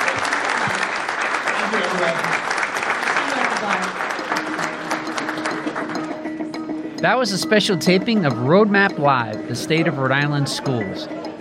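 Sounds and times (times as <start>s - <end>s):
audience applause for a panel: 0.0s - 6.5s
speech: 2.0s - 2.4s, 7.0s - 11.3s.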